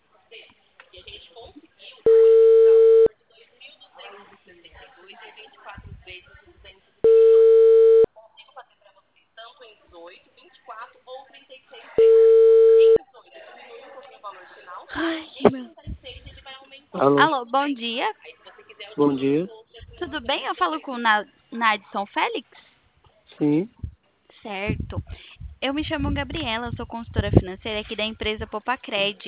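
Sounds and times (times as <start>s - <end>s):
quiet talk: 0.0s - 7.1s, 8.0s - 29.2s
ringback tone of an outgoing telephone call: 2.1s - 3.1s, 7.0s - 8.1s, 12.0s - 13.0s
speech: 17.1s - 22.6s, 23.4s - 23.8s, 24.4s - 29.2s.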